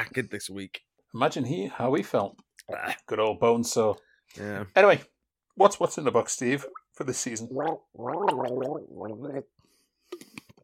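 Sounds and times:
speech: 0.0s - 10.3s
person gurgling a mouthful of water: 6.7s - 10.5s
wet splutters: 7.6s - 9.4s.

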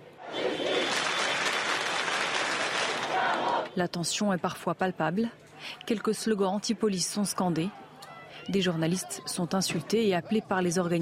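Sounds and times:
large crowd clapping in rhythm: 0.4s - 3.7s
speech: 3.8s - 7.8s, 8.5s - 10.9s.

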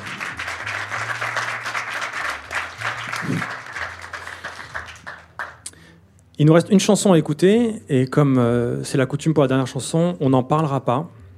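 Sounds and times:
audience applause: 0.0s - 5.7s
speech: 6.4s - 11.2s.

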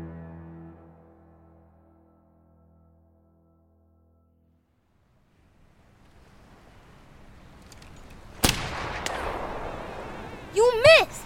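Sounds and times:
low ambient rumble in a video game: 5.3s - 11.2s
rifle shot in a video game: 8.3s - 10.3s.

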